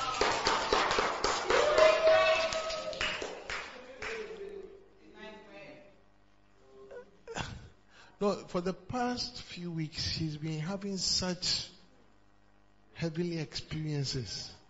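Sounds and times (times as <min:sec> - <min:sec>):
group applauding: 0:00.0 - 0:04.7
speech: 0:08.2 - 0:11.7, 0:13.0 - 0:14.6.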